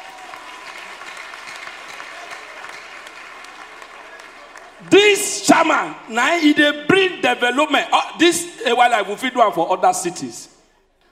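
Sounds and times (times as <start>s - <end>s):
audience applause: 0.0s - 5.2s
speech: 4.8s - 10.6s.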